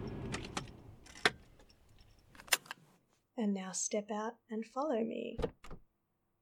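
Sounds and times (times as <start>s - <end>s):
car engine switched off: 0.0s - 2.2s
speech: 3.4s - 5.6s.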